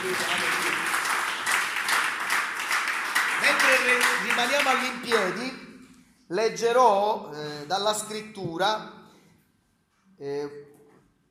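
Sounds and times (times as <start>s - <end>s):
speech: 0.0s - 0.5s, 3.7s - 5.7s, 6.3s - 9.0s, 10.2s - 10.7s
audience applauding: 0.0s - 5.5s.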